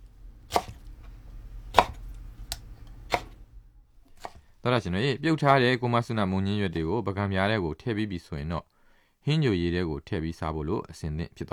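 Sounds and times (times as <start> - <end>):
knife chopping blanched mustard green leaves on a chopping board: 0.4 - 3.5, 4.1 - 4.5
speech: 4.6 - 11.5.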